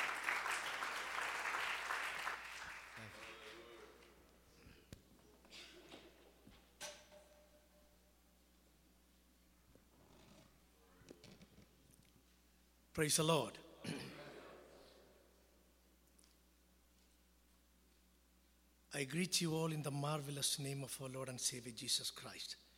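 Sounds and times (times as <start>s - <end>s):
church congregation applauding to welcome a guest pastor: 0.0s - 4.2s
speech: 13.0s - 14.2s, 19.0s - 22.7s.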